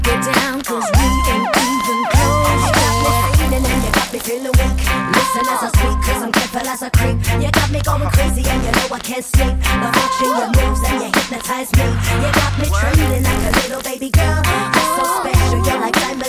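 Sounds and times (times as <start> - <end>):
funk DJ scratch intro at 100 BPM: 0.1 - 7.0, 7.5 - 16.2.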